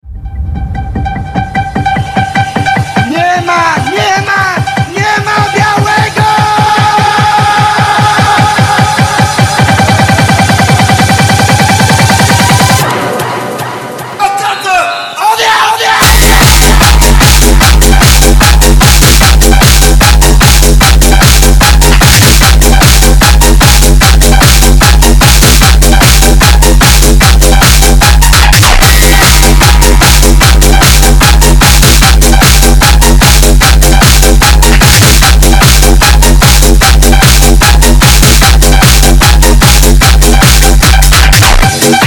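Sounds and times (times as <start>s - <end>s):
phonk music: 0.0s - 42.0s.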